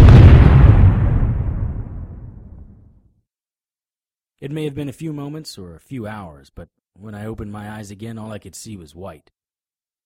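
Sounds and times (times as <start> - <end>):
dynamite stick explosion: 0.0 - 3.0
speech: 4.4 - 9.4.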